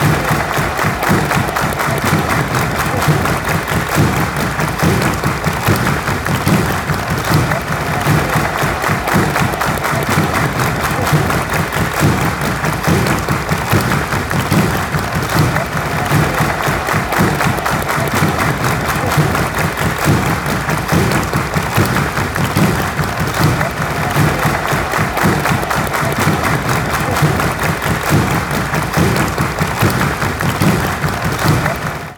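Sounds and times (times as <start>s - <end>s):
drums: 0.0s - 32.1s.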